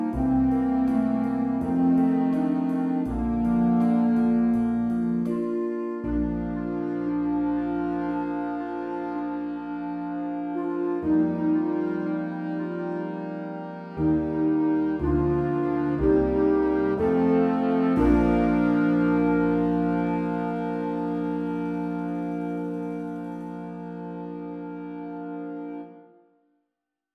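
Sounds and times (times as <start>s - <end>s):
jazz combo playing: 0.0s - 25.9s.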